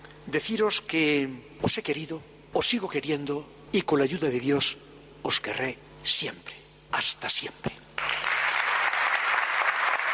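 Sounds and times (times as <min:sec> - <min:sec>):
speech: 0:00.2 - 0:07.8
long ovation by people of Burgos: 0:08.0 - 0:10.1.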